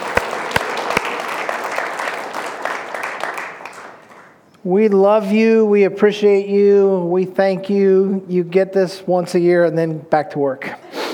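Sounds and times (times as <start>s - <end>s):
church congregation applauding the mothers: 0.0s - 4.5s
speech: 4.6s - 10.8s.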